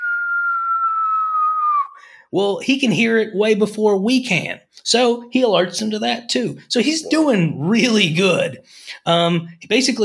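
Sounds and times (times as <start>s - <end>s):
person whistling in imitation of a falling bomb: 0.0s - 2.0s
speech: 2.0s - 10.0s.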